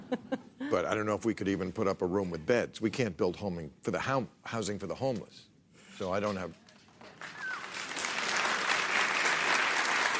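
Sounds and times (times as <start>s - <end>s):
speech: 0.1s - 6.7s
crowd applause: 7.0s - 10.1s.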